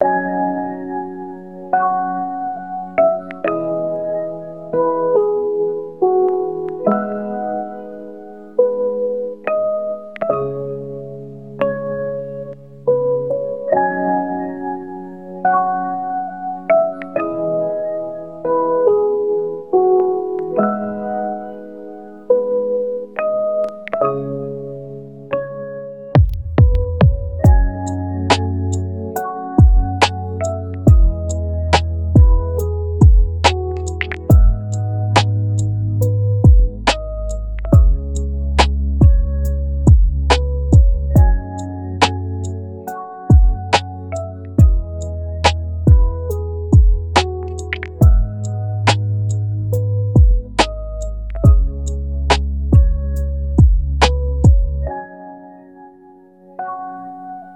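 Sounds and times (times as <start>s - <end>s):
rainy lofi music: 0.0s - 57.5s.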